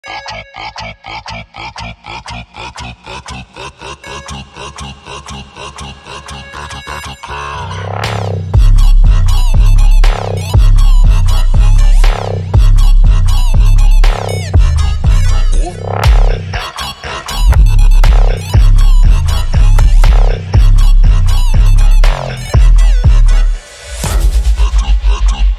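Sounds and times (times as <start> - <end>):
Brazilian funk music: 7.7 - 16.7, 17.3 - 25.5.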